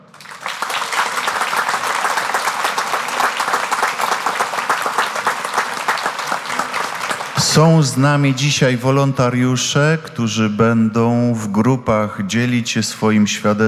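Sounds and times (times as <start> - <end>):
crowd applause: 0.0 - 8.4
speech: 7.6 - 13.6.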